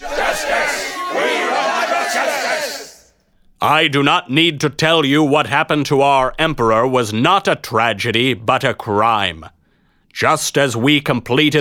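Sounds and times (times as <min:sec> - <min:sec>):
large crowd of men roaring and growling angrily: 0:00.0 - 0:03.0
harsh shouts: 0:00.0 - 0:03.1
speech: 0:03.6 - 0:11.5.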